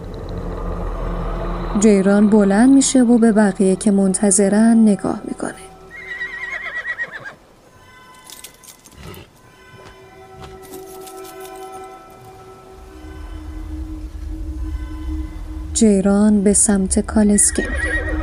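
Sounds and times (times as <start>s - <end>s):
speech: 1.7s - 5.7s, 15.8s - 17.9s
horse whinnying: 5.9s - 7.4s, 8.9s - 9.4s, 17.5s - 18.2s
hooves clattering: 7.3s - 13.2s.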